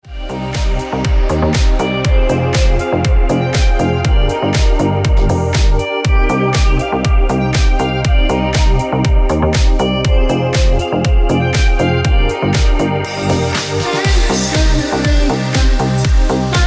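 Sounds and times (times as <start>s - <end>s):
ringtone: 0.0s - 16.5s.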